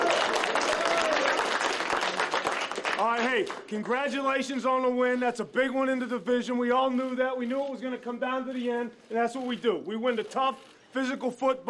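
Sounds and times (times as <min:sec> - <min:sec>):
round of applause for a football team after a division win: 0:00.0 - 0:04.0
speech: 0:03.0 - 0:11.6.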